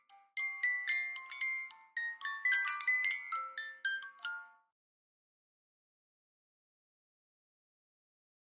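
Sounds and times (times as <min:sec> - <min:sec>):
Muji music boxes: 0:00.0 - 0:04.8.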